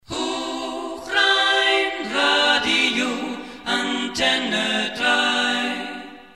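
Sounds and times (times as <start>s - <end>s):
a cappella singing: 0.0s - 6.3s.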